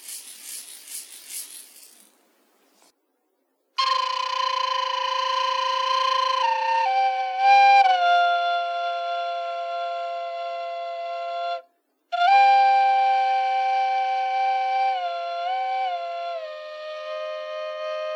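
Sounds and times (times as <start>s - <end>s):
flute playing: 3.8s - 18.1s.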